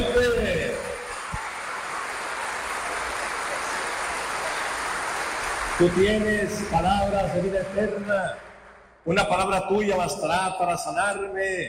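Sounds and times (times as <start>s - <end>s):
audience applauding: 0.0s - 9.5s
speech: 5.8s - 11.6s.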